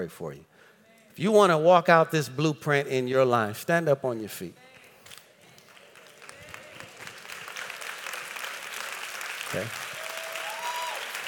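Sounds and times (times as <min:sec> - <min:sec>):
speech: 0:00.0 - 0:04.7, 0:09.5 - 0:09.8
audience applause: 0:05.6 - 0:11.2.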